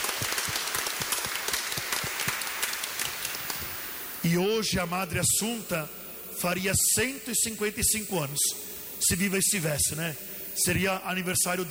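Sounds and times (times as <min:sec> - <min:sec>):
crowd applauding: 0:00.0 - 0:04.1
speech: 0:04.2 - 0:11.6.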